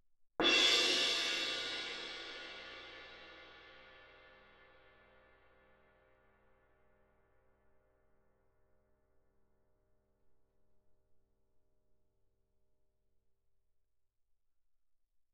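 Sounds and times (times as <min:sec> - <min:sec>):
suspended cymbal crash with mallet: 0:00.4 - 0:04.0.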